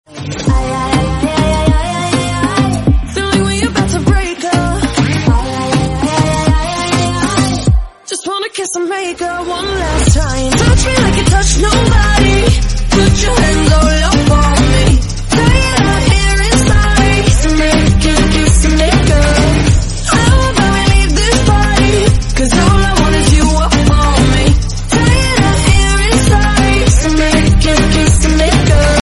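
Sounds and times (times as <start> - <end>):
romantic song ringtone: 0.1 - 29.0.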